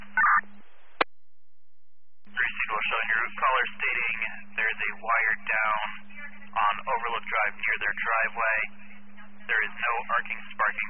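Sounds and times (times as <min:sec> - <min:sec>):
emergency dispatch radio acknowledging tone: 0:00.0 - 0:00.4, 0:02.3 - 0:08.7, 0:09.4 - 0:10.8
low hum: 0:00.0 - 0:10.8
speech: 0:06.6 - 0:08.8, 0:09.5 - 0:10.8.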